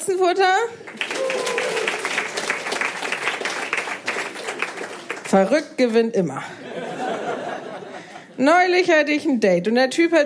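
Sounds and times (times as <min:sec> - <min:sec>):
speech: 0:00.0 - 0:01.4, 0:05.3 - 0:06.6, 0:08.4 - 0:10.2
audience clapping to vote: 0:00.8 - 0:05.9
laughter: 0:06.5 - 0:08.4.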